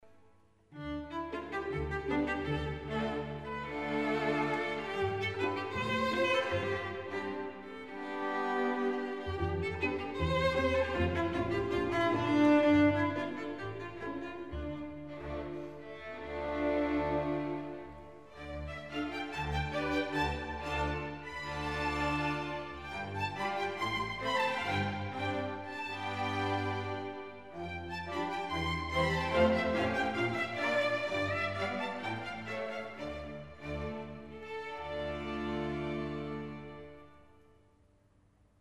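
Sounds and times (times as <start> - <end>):
orchestra playing folk dances: 0.8 - 37.4.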